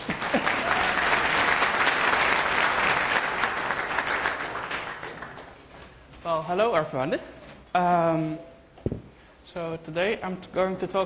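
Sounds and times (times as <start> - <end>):
audience applause: 0.0 - 5.7
speech: 6.5 - 11.0.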